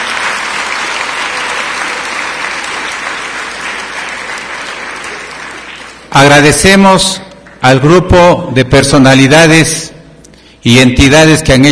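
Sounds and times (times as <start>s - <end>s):
warm audience applause: 0.0s - 6.2s
speech: 6.1s - 10.0s, 10.6s - 11.6s.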